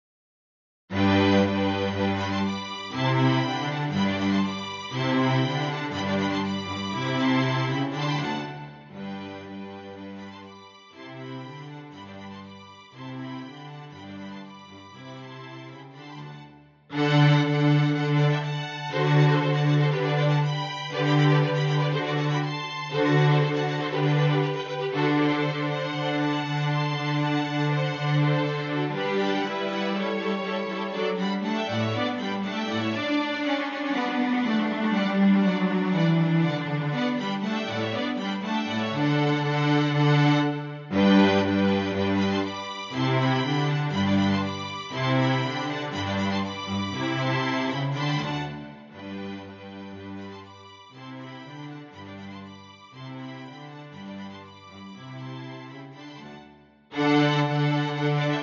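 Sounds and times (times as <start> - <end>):
sinfonia piece: 0.9 - 58.4.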